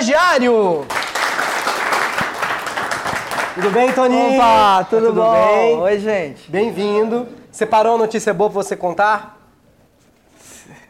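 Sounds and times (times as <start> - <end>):
speech: 0.1 - 1.0, 3.6 - 9.4
audience applause: 0.9 - 4.2.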